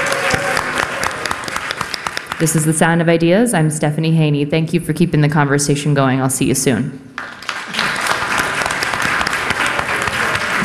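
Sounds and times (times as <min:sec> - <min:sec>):
live audience applause: 0:00.0 - 0:02.5, 0:07.2 - 0:10.6
speech: 0:02.4 - 0:07.3.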